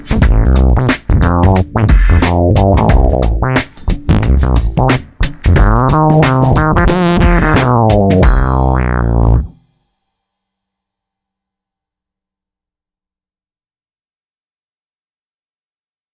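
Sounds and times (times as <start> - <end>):
ME-20B guitar effects patch: 0.0 - 9.6.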